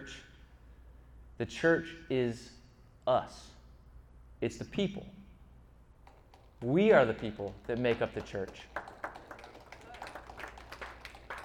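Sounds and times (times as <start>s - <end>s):
speech: 1.4s - 3.6s, 4.4s - 5.2s, 6.6s - 8.8s
audience clapping: 6.1s - 11.4s.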